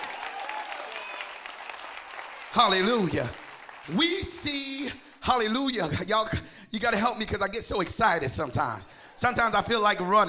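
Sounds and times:
faint whoops or voices: 0.0s - 1.5s
audience clapping hands: 0.0s - 5.8s
speech: 2.6s - 10.2s.

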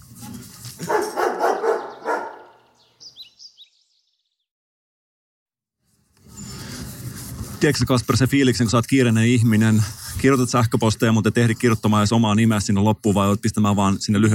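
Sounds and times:
dog barking: 0.8s - 2.6s
speech: 7.6s - 14.3s.

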